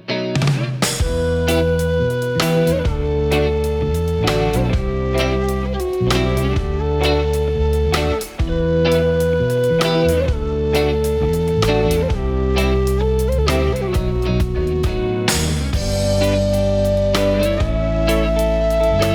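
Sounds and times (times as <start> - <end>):
rock band playing: 0.3 - 19.1
distorted electric guitar chords: 0.6 - 19.1.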